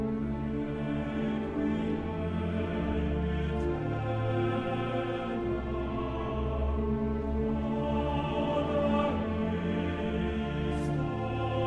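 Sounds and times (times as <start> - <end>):
requiem Kyrie: 0.2 - 11.6.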